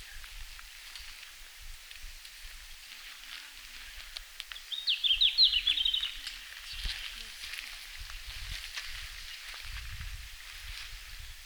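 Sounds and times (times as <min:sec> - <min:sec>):
red-flanked bluetail singing in Finland: 0:04.6 - 0:07.2.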